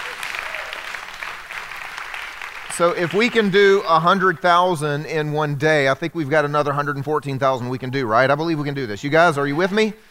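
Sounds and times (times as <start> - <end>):
audience applause and cheering: 0.0 - 3.8
speech: 2.8 - 10.0.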